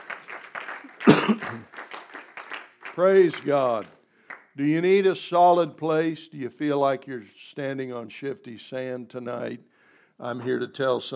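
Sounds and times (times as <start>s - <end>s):
church congregation clapping rhythmically: 0.0s - 4.9s
speech: 1.3s - 1.7s, 3.0s - 4.0s, 4.6s - 11.1s.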